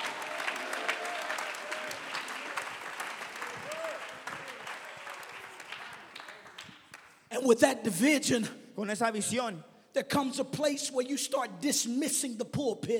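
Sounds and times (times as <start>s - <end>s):
audience clapping hands: 0.0s - 7.3s
speech: 7.4s - 12.9s.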